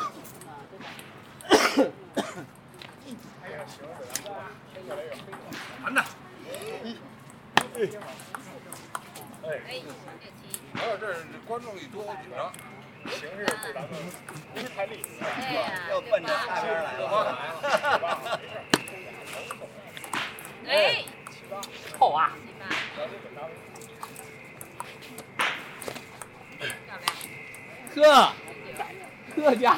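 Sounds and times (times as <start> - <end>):
people chattering at Ditan in Beijing: 0.0 - 29.7
laughter: 5.5 - 8.4, 13.1 - 20.0, 28.0 - 29.7
steady high whine: 12.4 - 29.7.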